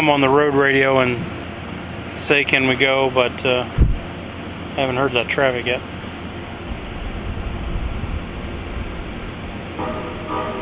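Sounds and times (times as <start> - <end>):
speech: 0.0 - 1.4, 2.3 - 3.8, 4.8 - 6.0
rail noise rumble: 0.0 - 10.5
train horn sounding two long tones: 9.8 - 10.5.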